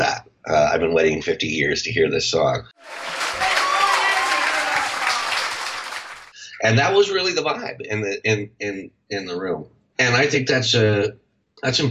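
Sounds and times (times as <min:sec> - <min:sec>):
speech: 0:00.7 - 0:03.4, 0:06.6 - 0:11.8
crowd applause on a live record: 0:02.8 - 0:06.4.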